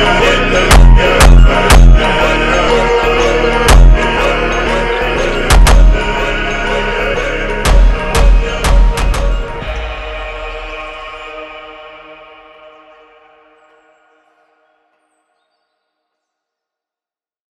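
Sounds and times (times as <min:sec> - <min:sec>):
slavic funk music: 0:00.0 - 0:11.3.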